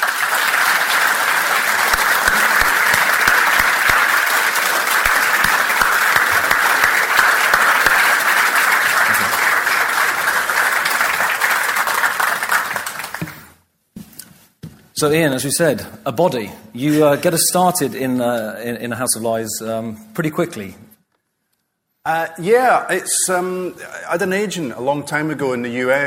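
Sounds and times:
audience applause at a literary event welcoming Ian Rankin: 0:00.0 - 0:13.5
speech: 0:15.0 - 0:20.9, 0:22.1 - 0:26.0.

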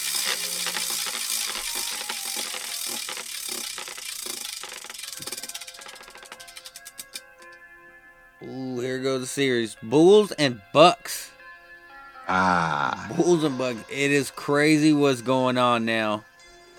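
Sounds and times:
prize wheel spinning: 0:00.0 - 0:07.6
speech: 0:08.4 - 0:11.3, 0:12.3 - 0:16.3.

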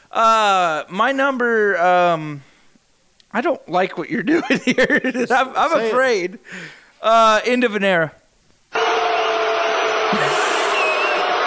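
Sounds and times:
speech: 0:00.1 - 0:02.5, 0:03.3 - 0:08.9
laughter: 0:04.2 - 0:06.4, 0:09.8 - 0:11.4
crowd booing: 0:08.8 - 0:11.4.

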